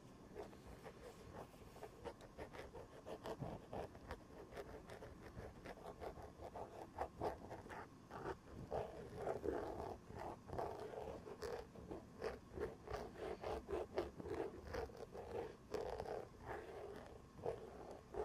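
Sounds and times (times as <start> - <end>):
fabric scratching on the elbow pad of an old sweater: 0.0 - 18.2.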